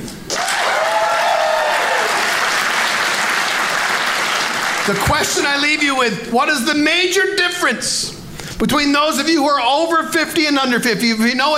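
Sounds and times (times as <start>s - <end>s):
audience applause: 0.3s - 5.6s
speech: 4.8s - 11.5s.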